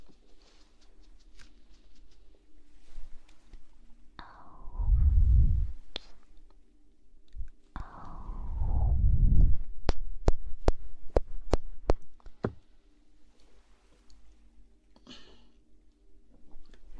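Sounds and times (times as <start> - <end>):
faint steady hum: 0.0 - 16.9
ASMR ear blowing: 4.5 - 5.9, 7.8 - 11.5.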